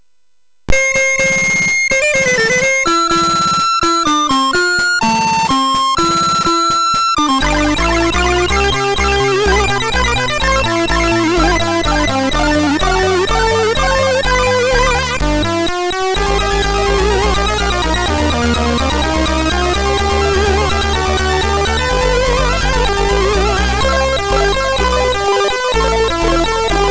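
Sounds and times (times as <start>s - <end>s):
MOS6581R3 chip music demo: 0.7s - 26.8s.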